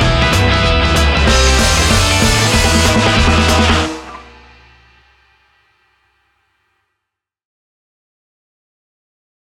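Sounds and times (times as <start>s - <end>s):
karaoke version backing track: 0.0s - 4.4s.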